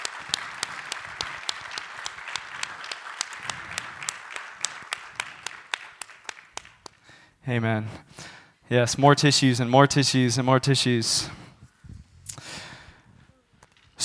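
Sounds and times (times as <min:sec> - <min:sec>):
audience applause as women come onstage: 0:00.0 - 0:07.0
speech: 0:07.4 - 0:11.4.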